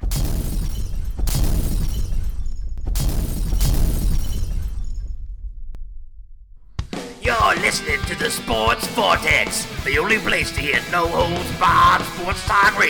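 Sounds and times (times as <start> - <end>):
hand grenades exploding: 0.0 - 7.3
crackling shattering debris: 0.0 - 7.4
speech: 7.8 - 12.8.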